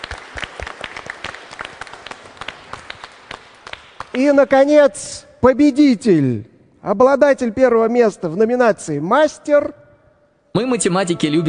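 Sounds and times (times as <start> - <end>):
audience applause: 0.0 - 4.2
speech: 4.2 - 9.8, 10.6 - 11.4.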